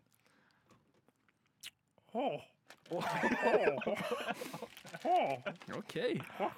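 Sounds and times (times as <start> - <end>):
chewing sour candy: 0.0 - 2.0, 4.3 - 6.3
speech: 1.6 - 6.5
laughter: 2.9 - 6.5.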